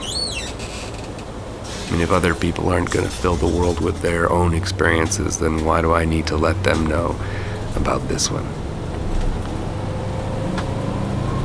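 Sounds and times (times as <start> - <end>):
moving bus engine and road drone: 0.0 - 11.4
speech: 1.9 - 8.6.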